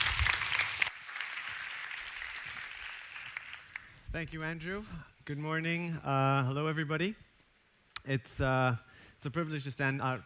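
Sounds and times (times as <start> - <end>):
audience applause: 0.0 - 4.0
speech: 4.1 - 7.3, 8.0 - 10.2.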